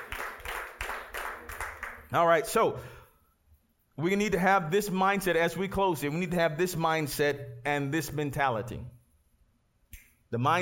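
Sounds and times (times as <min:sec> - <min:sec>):
audience clapping in rhythm: 0:00.0 - 0:02.2
speech: 0:02.1 - 0:03.0, 0:04.0 - 0:09.0, 0:10.3 - 0:10.6.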